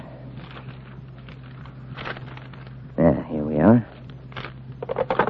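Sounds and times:
telephone book pages flipping: 0.4 - 2.8, 3.9 - 5.1
speech: 3.7 - 3.9.

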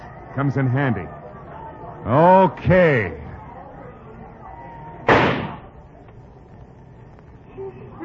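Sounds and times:
speech: 0.4 - 1.2, 2.0 - 3.2
gunshot in a radio drama: 5.1 - 5.7.

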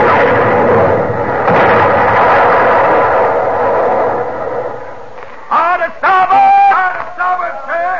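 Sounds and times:
ship's cannons firing in a naval battle at sea: 0.0 - 5.2
men speaking: 5.4 - 7.9.

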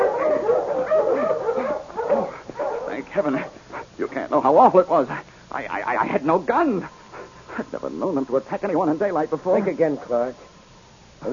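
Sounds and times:
dogs whimpering and yipping: 0.0 - 3.9
speech: 3.2 - 7.0, 7.6 - 10.5.

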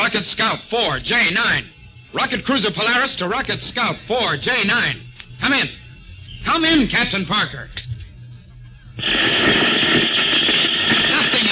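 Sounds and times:
speech: 0.1 - 5.8, 6.4 - 7.8, 9.0 - 10.0
radio electronic interference: 9.0 - 11.4.

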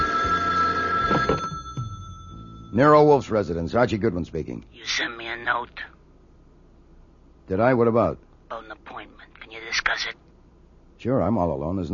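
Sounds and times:
telephone bell ringing: 0.0 - 3.2
speech: 2.8 - 6.0, 7.5 - 10.2, 11.0 - 11.9.

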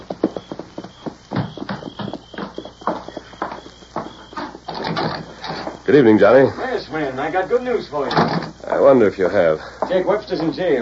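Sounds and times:
horses' hooves clip-clopping as they're led: 0.0 - 6.0
speech: 5.9 - 10.8.

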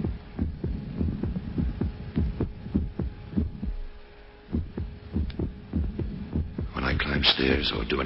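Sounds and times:
heartbeat with occasional skipped beats: 0.0 - 7.2
speech: 7.4 - 8.0.

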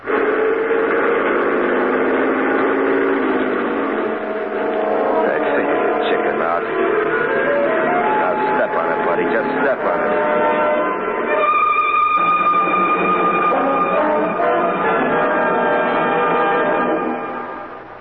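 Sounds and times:
indistinct voices: 0.0 - 11.1
truck engine droning and revving: 0.0 - 17.6.

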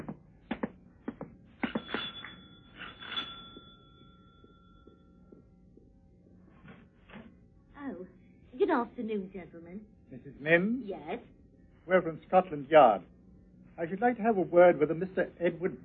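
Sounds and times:
front doorbell ringing: 1.6 - 5.4
speech: 8.7 - 13.1, 13.8 - 15.8.

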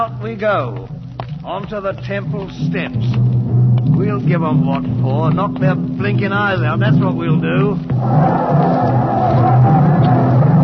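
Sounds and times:
speech: 0.0 - 3.2, 3.8 - 9.8
crowd yelling: 7.9 - 10.6.

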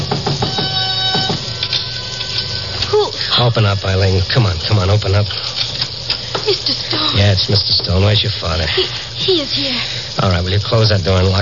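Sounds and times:
knocking on a door: 0.0 - 1.5
speech: 3.4 - 5.5, 6.5 - 11.3.

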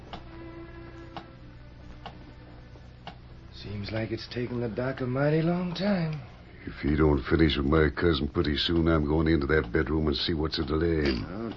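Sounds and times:
low hum: 0.0 - 11.5
speech: 3.6 - 11.5
large clock ticking: 8.6 - 9.9.

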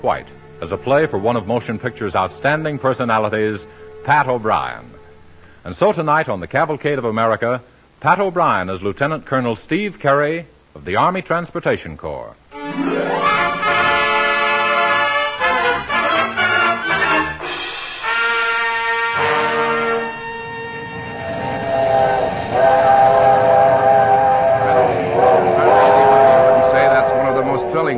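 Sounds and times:
speech: 0.0 - 5.0, 5.6 - 13.5
big steam locomotive multi-toned whistle: 0.0 - 5.6, 12.5 - 27.9.

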